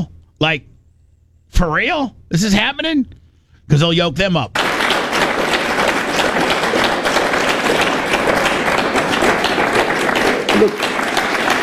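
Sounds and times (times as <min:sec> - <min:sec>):
speech: 0:00.0 - 0:00.7, 0:01.5 - 0:04.6, 0:10.6 - 0:10.8
audience clapping: 0:04.6 - 0:11.6.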